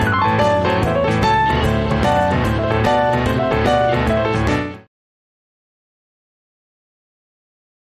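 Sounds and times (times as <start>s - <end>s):
shuffle rhythm music: 0.0s - 4.8s.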